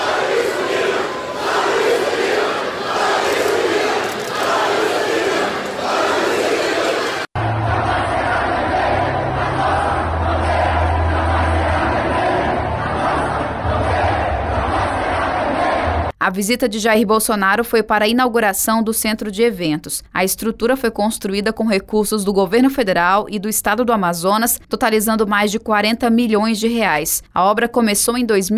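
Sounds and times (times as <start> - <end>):
crowd shouting political slogans: 0.0 - 16.1
speech: 16.3 - 28.5.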